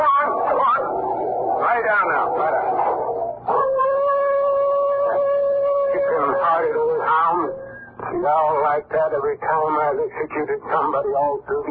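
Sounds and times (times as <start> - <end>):
dog howling in its kennel: 0.0 - 7.7
speech: 8.8 - 11.6.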